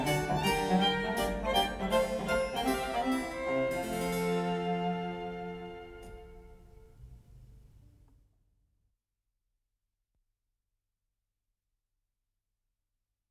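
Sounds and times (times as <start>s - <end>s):
trio sonata for two violins and basso continuo in F major: 0.0s - 7.6s.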